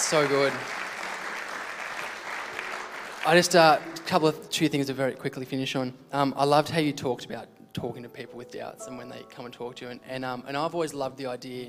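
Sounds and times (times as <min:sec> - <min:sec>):
audience clapping: 0:00.0 - 0:04.4
speech: 0:00.1 - 0:00.8, 0:03.2 - 0:11.6.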